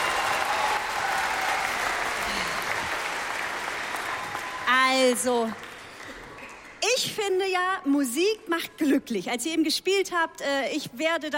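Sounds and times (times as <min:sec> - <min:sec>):
steady audience applause: 0:00.0 - 0:06.8
speech: 0:05.1 - 0:05.7, 0:07.0 - 0:11.3.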